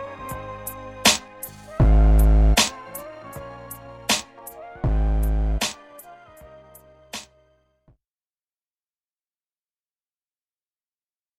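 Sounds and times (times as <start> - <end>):
jazzy music: 0.0 - 7.4.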